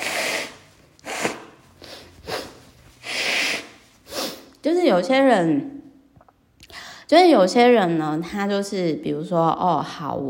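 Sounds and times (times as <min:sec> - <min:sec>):
person blowing nose: 0:00.0 - 0:04.6
speech: 0:04.6 - 0:05.8, 0:07.1 - 0:10.2.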